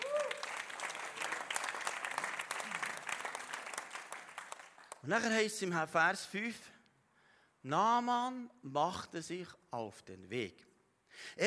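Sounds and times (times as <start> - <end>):
applause: 0.0 - 5.4
speech: 5.0 - 6.8, 7.6 - 11.4.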